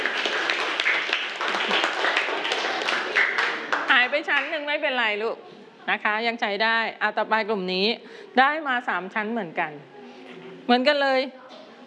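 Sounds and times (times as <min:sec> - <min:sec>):
group of children clapping their hands: 0:00.0 - 0:04.5
speech: 0:04.3 - 0:10.0, 0:10.7 - 0:11.4.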